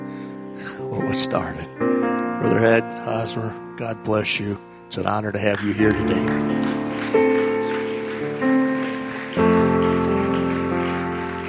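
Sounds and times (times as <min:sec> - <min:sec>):
speech: 0:00.9 - 0:07.4
people clapping hands: 0:05.4 - 0:11.4.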